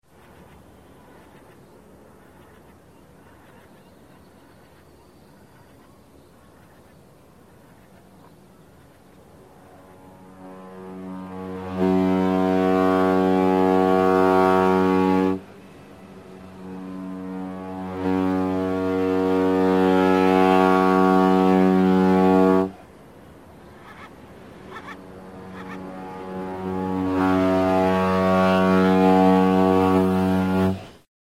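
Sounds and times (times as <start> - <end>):
boat: 0.0 - 31.0.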